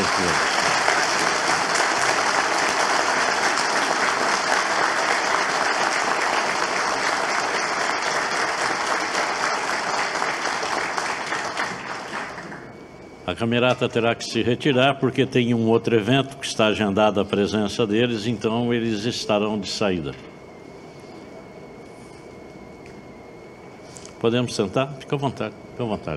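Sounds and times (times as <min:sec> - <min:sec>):
audience applause: 0:00.0 - 0:12.7
speech: 0:13.3 - 0:20.3, 0:24.2 - 0:26.1.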